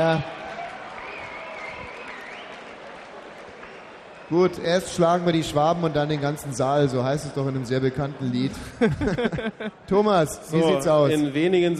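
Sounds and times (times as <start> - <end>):
speech: 0.0 - 0.4, 4.3 - 11.7
audience applause: 0.0 - 6.4
laughter: 8.4 - 11.1.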